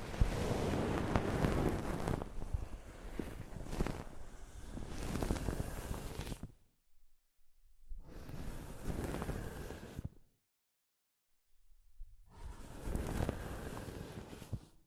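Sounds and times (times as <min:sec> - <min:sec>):
soft fabric brushing against a microphone: 0:00.0 - 0:06.5, 0:08.0 - 0:10.1, 0:12.3 - 0:14.8.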